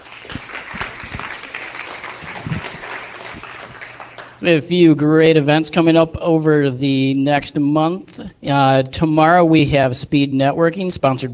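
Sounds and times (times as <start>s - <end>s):
crowd applauding: 0.0s - 4.6s
speech: 4.4s - 11.3s.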